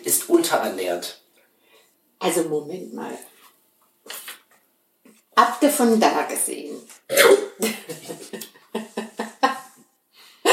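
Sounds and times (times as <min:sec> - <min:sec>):
speech: 0:00.1 - 0:01.2, 0:02.2 - 0:03.3, 0:05.4 - 0:08.8
person coughing after choking on water: 0:07.1 - 0:08.4
laughter: 0:07.6 - 0:09.8.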